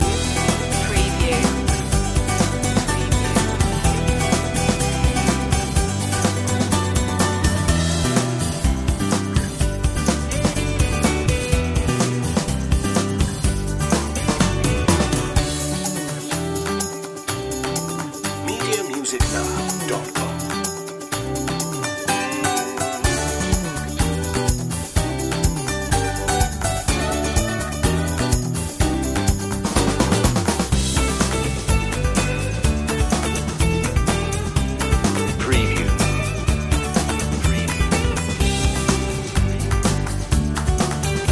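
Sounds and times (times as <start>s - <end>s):
bright music loop: 0.0s - 41.2s.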